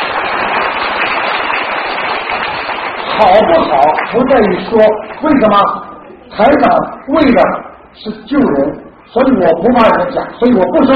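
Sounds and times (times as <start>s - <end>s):
audience clapping: 0.0s - 5.2s
speech: 3.2s - 10.9s.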